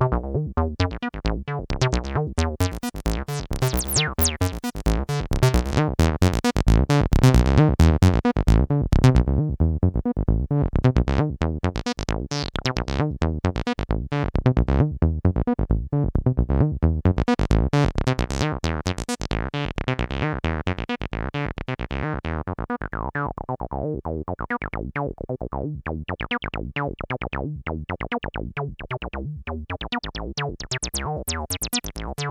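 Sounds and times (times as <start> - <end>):
Behringer TD-3 synthesizer pattern: 0.0 - 32.2.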